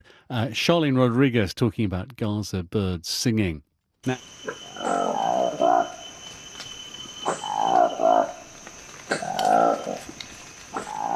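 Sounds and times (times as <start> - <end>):
speech: 0.3 - 6.0
steady high-pitched buzz of insects: 4.0 - 11.1
Likweli monkey hooting and cooing calls: 4.1 - 6.2, 7.0 - 11.1.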